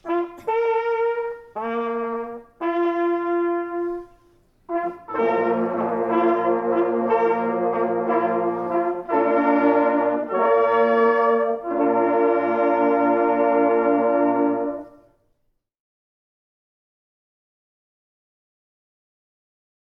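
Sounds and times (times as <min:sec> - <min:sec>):
hunting horn players playing a hunting call: 0:00.0 - 0:15.2.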